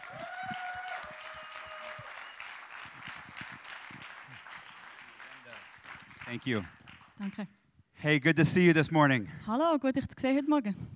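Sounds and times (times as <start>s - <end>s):
audience applause at ICF Luzern church: 0.0s - 7.5s
speech: 6.3s - 10.9s.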